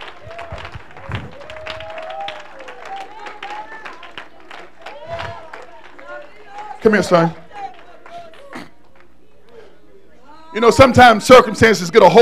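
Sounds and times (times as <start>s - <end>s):
audience clapping: 0.0s - 9.2s
speech: 6.8s - 7.4s, 10.6s - 12.2s.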